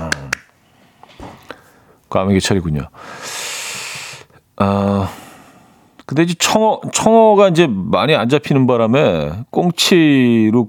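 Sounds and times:
hand clapping: 0.0s - 0.5s
speech: 2.1s - 3.2s, 4.6s - 5.2s, 6.1s - 10.6s.

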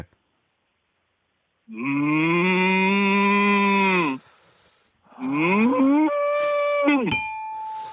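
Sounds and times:
speech: 1.7s - 2.1s
person imitating an angry cow mooing: 1.7s - 4.2s, 5.1s - 7.2s.

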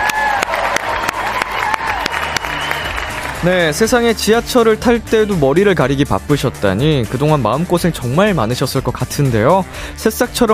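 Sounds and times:
applause sound effect: 0.0s - 4.0s
speech: 3.4s - 10.5s.

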